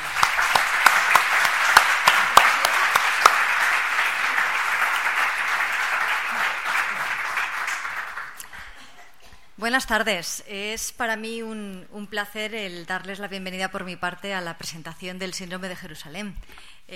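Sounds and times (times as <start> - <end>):
audience applause: 0.0 - 8.8
speech: 9.7 - 16.9.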